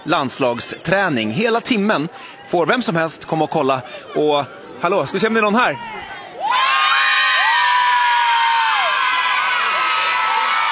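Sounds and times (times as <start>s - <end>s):
speech: 0.0s - 6.2s
crowd cheering in a stadium stand: 5.7s - 10.6s
high-pitched shouts and whoops, some like children: 5.8s - 10.6s.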